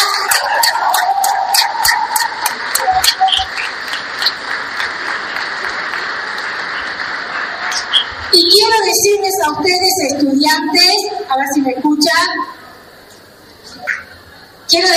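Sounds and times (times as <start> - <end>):
audience applause: 0.0 - 8.4
speech: 9.4 - 12.6, 14.7 - 14.9.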